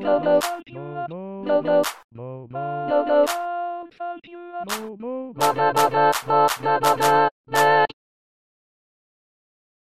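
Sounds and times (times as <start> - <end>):
slowed-down soprano part of a funk pop song: 0.0 - 7.9.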